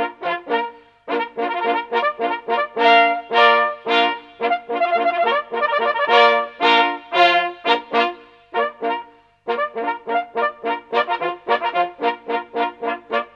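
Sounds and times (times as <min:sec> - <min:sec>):
polyphonic horn rising in pitch: 0:00.0 - 0:13.3.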